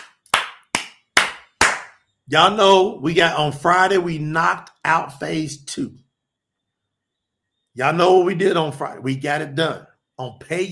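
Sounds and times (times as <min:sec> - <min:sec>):
hands clapping: 0:00.0 - 0:02.0
speech: 0:02.3 - 0:06.0, 0:07.8 - 0:10.6.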